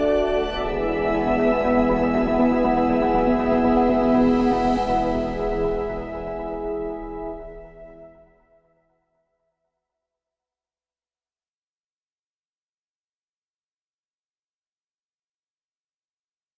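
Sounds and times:
ambient music: 0:00.0 - 0:08.9.

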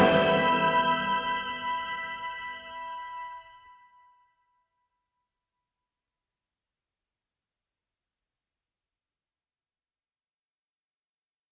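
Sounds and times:
cinematic alarm: 0:00.0 - 0:01.9.

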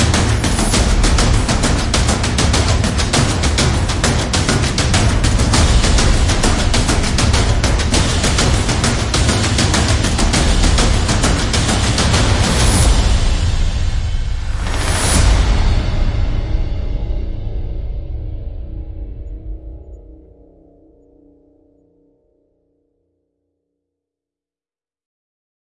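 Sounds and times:
percussion: 0:00.0 - 0:20.4.

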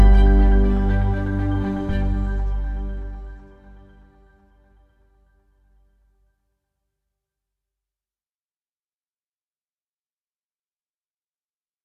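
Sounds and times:
effortless ambient music: 0:00.0 - 0:04.8.

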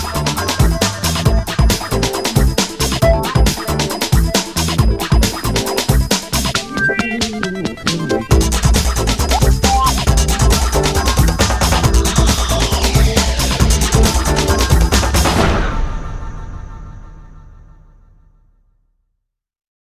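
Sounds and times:
electro beat: 0:00.0 - 0:15.4.

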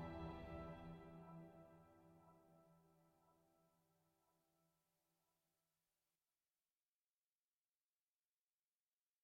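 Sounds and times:
tragic ambient music: 0:00.0 - 0:03.0.

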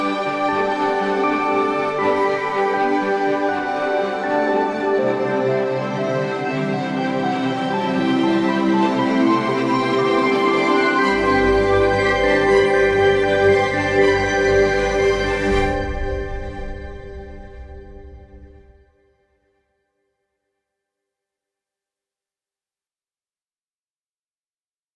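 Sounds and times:
ambient music: 0:00.0 - 0:19.0.

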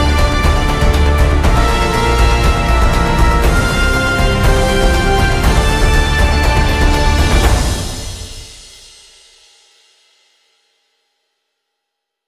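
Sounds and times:
triumphant instrumental music: 0:00.0 - 0:08.7.

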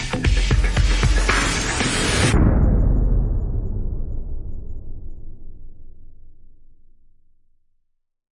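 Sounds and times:
percussion: 0:00.0 - 0:04.3.

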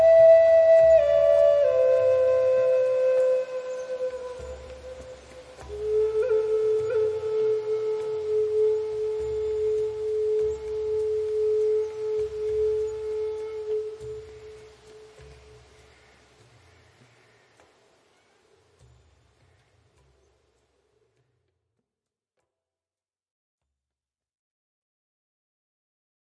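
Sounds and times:
relaxing Native American flute music: 0:00.0 - 0:15.6
gentle rain: 0:00.0 - 0:21.2.

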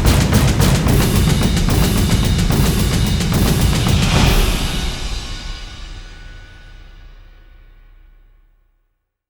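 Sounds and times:
drums: 0:00.0 - 0:08.5.

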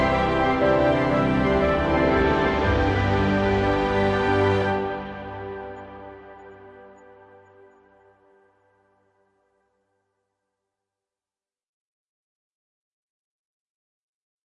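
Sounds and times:
ambient music: 0:00.0 - 0:09.6.

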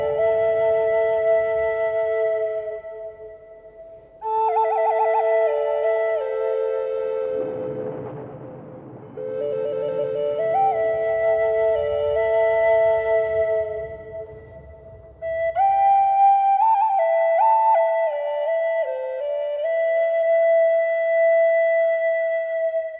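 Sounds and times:
thunder on a warm summer evening: 0:00.0 - 0:17.6
Native American flutes: 0:00.0 - 0:22.9.

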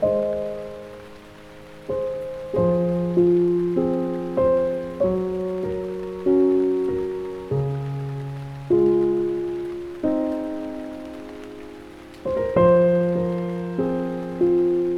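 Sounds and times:
calming piano music: 0:00.0 - 0:14.9
rain: 0:00.0 - 0:14.9.

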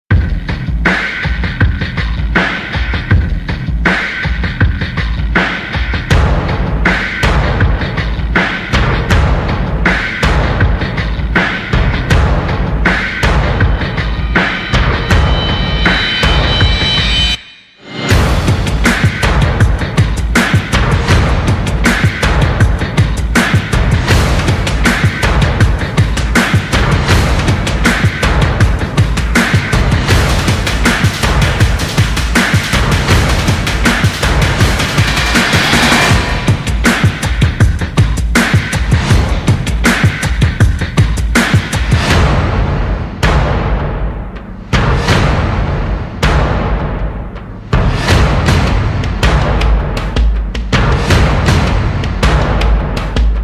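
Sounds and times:
drums: 0:00.0 - 0:53.4.

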